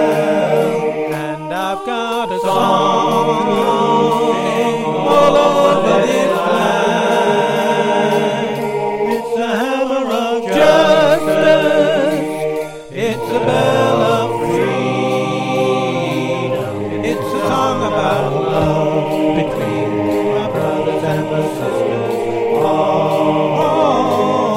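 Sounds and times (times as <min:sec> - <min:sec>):
swing vocals with all voices: 0:00.0 - 0:24.5.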